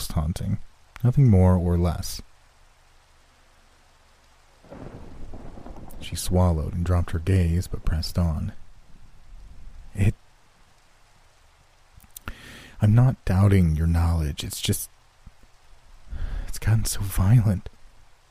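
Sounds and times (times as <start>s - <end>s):
rain: 0.0s - 18.2s
speech: 0.2s - 2.3s, 6.0s - 8.6s, 10.0s - 10.2s, 12.8s - 15.0s, 16.6s - 17.8s
thunder: 4.7s - 10.0s.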